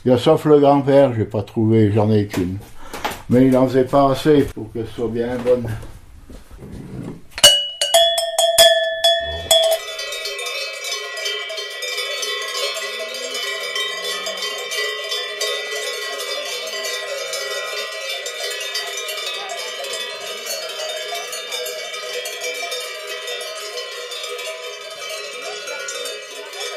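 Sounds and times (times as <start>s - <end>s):
speech: 0.0s - 6.0s
cowbells of a herd clanking on alpine pasture: 7.4s - 26.7s.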